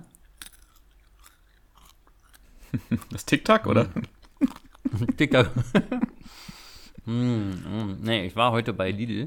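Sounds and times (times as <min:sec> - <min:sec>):
chewing honey-salted peanuts: 0:00.0 - 0:05.0
laughter: 0:02.6 - 0:06.2
speech: 0:02.9 - 0:04.2, 0:05.0 - 0:06.5, 0:07.1 - 0:09.2.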